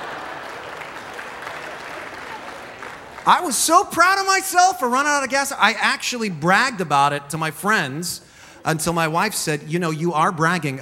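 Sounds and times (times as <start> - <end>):
a few men applauding: 0.0 - 4.4
speech: 3.2 - 10.8.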